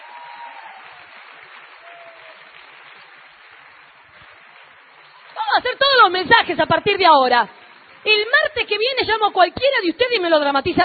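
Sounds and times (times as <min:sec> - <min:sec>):
audience applause: 0:00.0 - 0:06.2
speech: 0:05.6 - 0:10.8.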